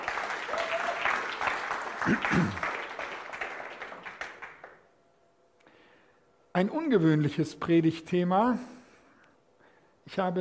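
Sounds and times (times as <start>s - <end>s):
audience applause: 0.0s - 4.8s
speech: 2.1s - 2.7s, 6.6s - 8.8s, 10.1s - 10.4s.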